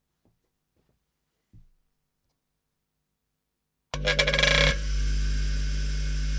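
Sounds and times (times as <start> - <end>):
bench grinder: 4.0 - 6.2.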